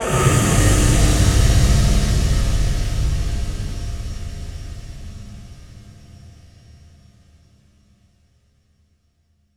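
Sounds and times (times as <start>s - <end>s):
explosions: 0.0s - 6.1s
impact hits: 0.0s - 6.6s.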